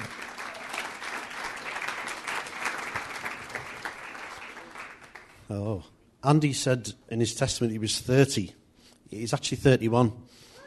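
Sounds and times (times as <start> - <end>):
audience applause: 0.0 - 5.4
speech: 5.5 - 10.4.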